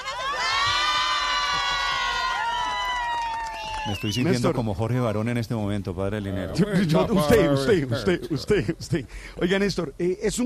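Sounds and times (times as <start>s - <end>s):
neighborhood crowd cheering and applauding: 0.0s - 4.5s
speech: 3.8s - 10.4s.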